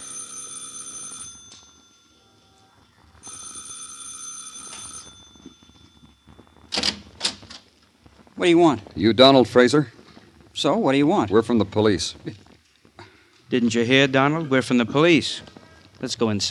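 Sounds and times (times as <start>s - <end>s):
electric doorbell ringing: 0.0s - 7.2s
speech: 8.4s - 10.0s, 10.6s - 12.4s, 13.5s - 16.4s.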